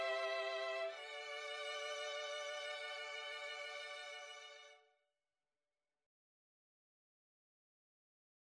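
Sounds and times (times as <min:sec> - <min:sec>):
string quartet: 0:00.0 - 0:04.8.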